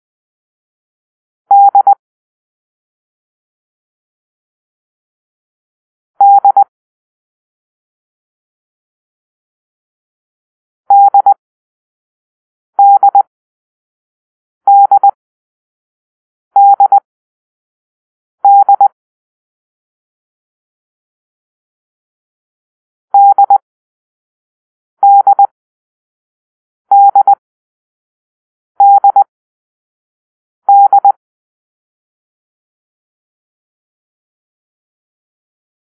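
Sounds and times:
morse code beeps for the letter D: 0:01.5 - 0:02.0, 0:06.2 - 0:06.6, 0:10.9 - 0:11.4, 0:12.8 - 0:13.3, 0:14.7 - 0:15.2, 0:16.6 - 0:17.0, 0:18.4 - 0:19.0, 0:23.2 - 0:23.6, 0:25.0 - 0:25.5, 0:26.9 - 0:27.4, 0:28.8 - 0:29.3, 0:30.7 - 0:31.2.

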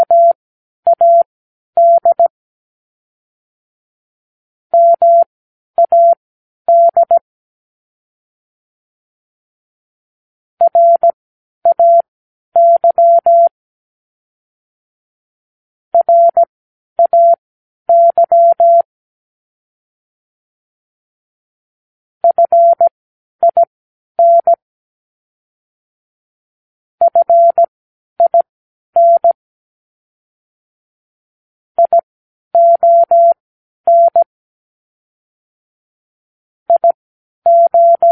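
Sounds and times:
morse code practice words: 0:00.0 - 0:02.3, 0:04.8 - 0:07.2, 0:10.6 - 0:13.5, 0:16.0 - 0:18.9, 0:22.2 - 0:24.6, 0:27.0 - 0:29.4, 0:31.8 - 0:32.0, 0:32.6 - 0:34.3, 0:36.7 - 0:38.0.

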